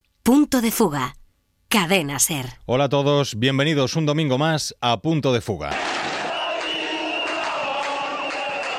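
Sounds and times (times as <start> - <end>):
speech: 0.2 - 6.0
crowd of thousands of protesters shouting in Burkina Faso: 5.7 - 8.7.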